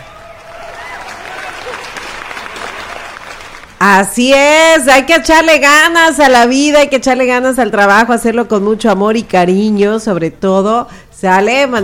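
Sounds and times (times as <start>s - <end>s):
loud applause: 0.0s - 3.8s
speech: 3.8s - 11.8s.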